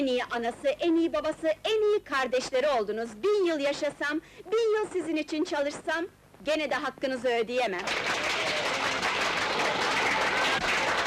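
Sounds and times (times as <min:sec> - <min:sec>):
speech: 0:00.0 - 0:08.4
crowd applause: 0:07.8 - 0:11.0.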